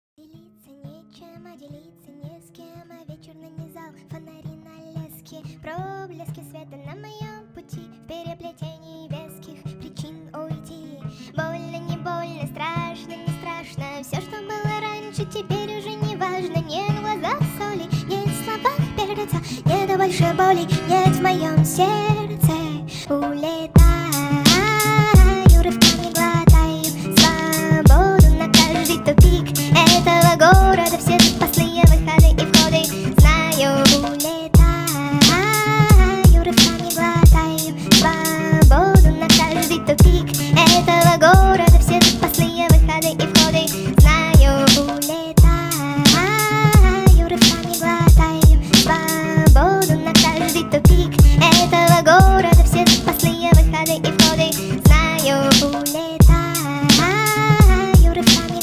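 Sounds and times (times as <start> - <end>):
hood hip hop beats: 15.5 - 58.6.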